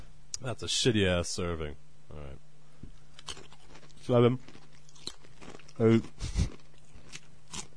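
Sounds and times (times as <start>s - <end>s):
speech: 0.4s - 2.4s, 4.0s - 4.6s, 5.8s - 6.5s
spicy red pepper crackers crunching: 3.0s - 7.7s.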